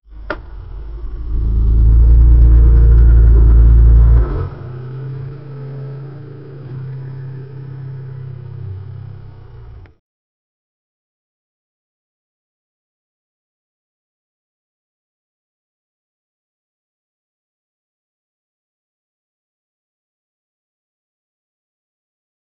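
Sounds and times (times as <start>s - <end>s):
McLaren 720S sports car: 0.1s - 10.0s.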